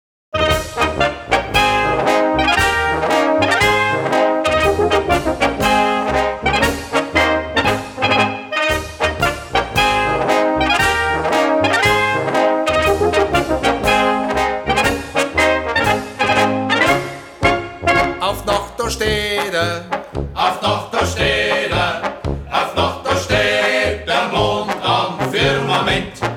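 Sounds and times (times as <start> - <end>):
march music: 0.4 - 26.3.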